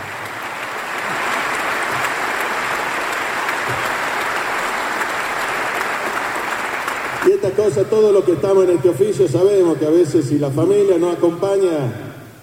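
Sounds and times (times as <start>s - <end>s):
crowd clapping: 0.0s - 8.8s
speech: 7.4s - 12.1s.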